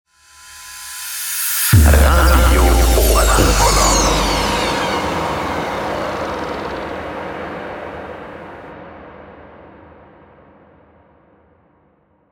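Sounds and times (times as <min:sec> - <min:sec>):
universal transition sound effect: 0:00.5 - 0:08.7.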